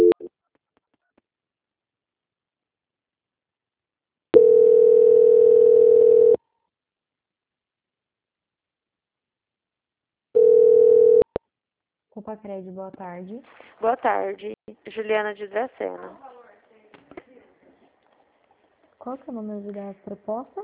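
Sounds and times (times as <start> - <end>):
steady mid-pitched electronic telephone line tone while a call is transferred: 0.0 - 0.3, 4.4 - 6.4, 10.4 - 11.4
speech: 12.3 - 16.3, 19.0 - 20.6.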